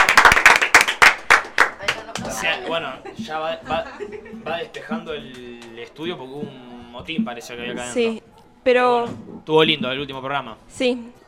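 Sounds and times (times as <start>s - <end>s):
applause: 0.0s - 2.4s
laughter: 2.2s - 5.5s
speech: 2.4s - 11.2s.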